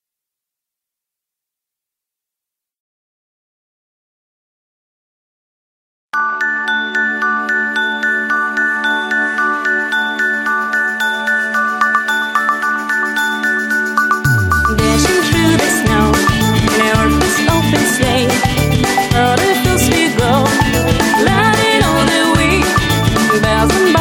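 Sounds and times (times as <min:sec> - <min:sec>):
Christmas song: 0:06.2 - 0:23.9.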